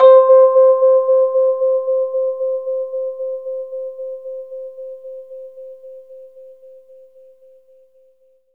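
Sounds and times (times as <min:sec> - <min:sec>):
Rhodes electric piano fast in C: 0:00.0 - 0:05.0.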